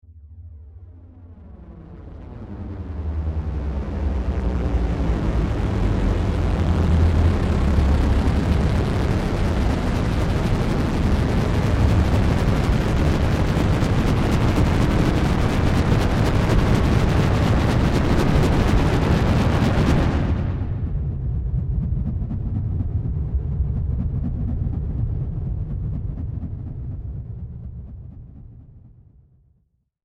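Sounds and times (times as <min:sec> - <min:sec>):
big ominous futuristic drone of spaceship arriving: 0:00.1 - 0:29.0.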